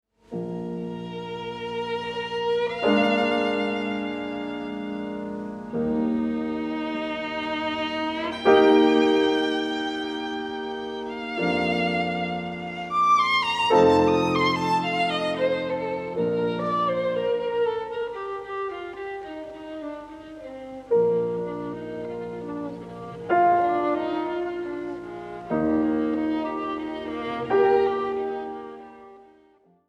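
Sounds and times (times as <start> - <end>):
piano and violin sonata slow movement: 0.2 - 29.8.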